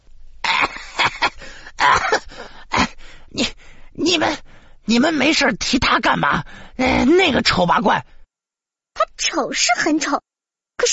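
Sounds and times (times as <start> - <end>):
harsh raspy coughing: 0.4 - 3.6
speech: 4.1 - 8.1, 9.2 - 10.9.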